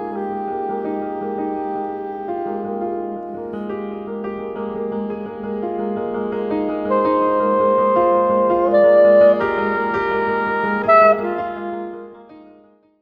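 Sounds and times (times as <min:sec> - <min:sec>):
soprano saxophone: 0:00.0 - 0:04.0, 0:06.5 - 0:12.6
piano: 0:00.0 - 0:13.0.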